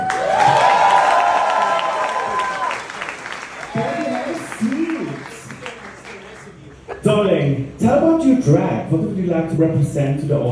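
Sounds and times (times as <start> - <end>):
high whooping cheers and shouts: 0.0 - 6.4
audience applause: 0.0 - 6.7
speech: 8.2 - 10.4.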